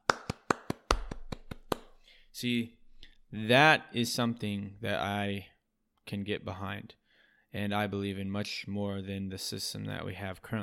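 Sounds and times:
clapping: 0.0 - 1.9
speech: 2.4 - 5.5, 6.1 - 10.6.

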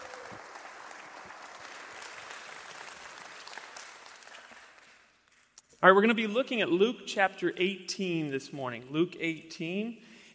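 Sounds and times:
church congregation clapping in welcome for a speaker: 0.0 - 5.5
speech: 5.8 - 10.3.

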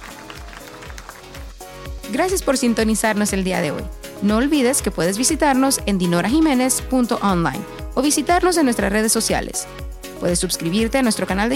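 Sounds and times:
audience applause: 0.0 - 1.6
speech: 2.1 - 11.5.

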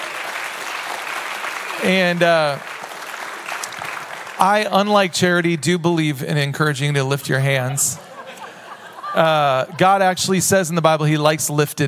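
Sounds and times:
audience applause: 0.0 - 5.0
speech: 1.8 - 2.7, 4.4 - 8.1, 9.2 - 11.8
laughter: 7.3 - 11.2.

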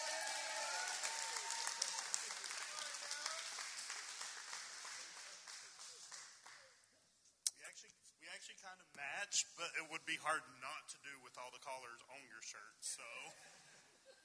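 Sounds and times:
faint audience clapping at a storytelling event: 0.0 - 6.7
speech: 7.8 - 13.6.

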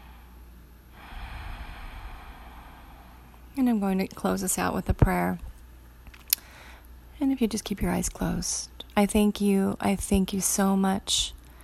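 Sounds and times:
deep breath taken slowly: 0.0 - 3.6, 6.4 - 6.9
speech: 3.6 - 5.5, 7.2 - 11.4.

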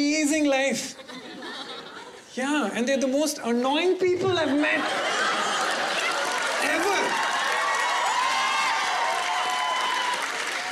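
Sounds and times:
laughter: 0.8 - 2.3, 4.2 - 7.2
speech: 2.4 - 5.2
crowd cheering and whooping: 5.1 - 10.7.

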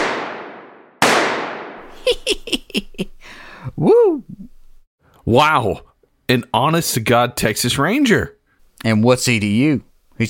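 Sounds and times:
gunshots: 0.0 - 1.9
laughter: 2.0 - 3.2
speech: 2.0 - 4.4, 5.2 - 10.2.

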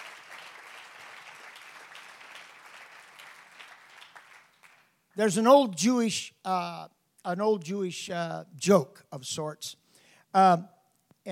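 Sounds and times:
audience clapping hands: 0.0 - 5.2
speech: 5.2 - 11.3.

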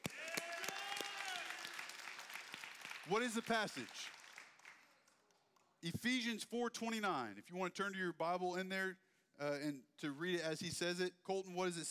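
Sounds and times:
audience clapping: 0.0 - 5.8
speech: 3.1 - 4.2, 5.8 - 11.9.

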